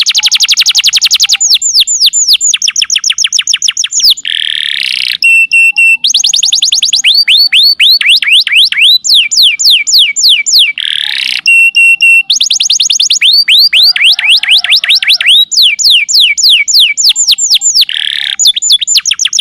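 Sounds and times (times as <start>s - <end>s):
bird song with high whistled notes and rapid descending trill: 0.0s - 19.3s.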